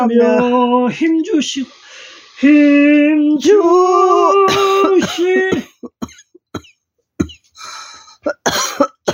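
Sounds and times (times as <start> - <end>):
speech: 0.1 - 5.7
person coughing: 4.5 - 7.5, 8.1 - 9.1.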